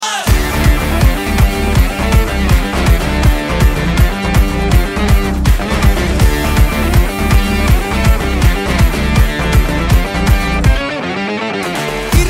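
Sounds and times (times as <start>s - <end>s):
background music ringtone: 0.3s - 12.2s.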